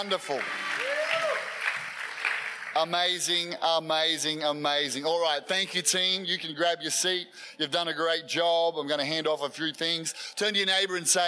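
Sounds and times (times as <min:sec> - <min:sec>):
speech: 0:00.0 - 0:00.6, 0:02.8 - 0:11.2
crowd audience applauding: 0:00.0 - 0:02.9.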